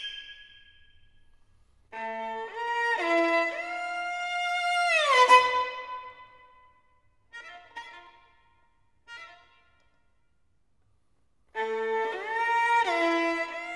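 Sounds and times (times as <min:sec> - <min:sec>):
virtuoso violin caprice allegro: 0:01.9 - 0:06.5, 0:07.3 - 0:09.8, 0:11.5 - 0:13.7.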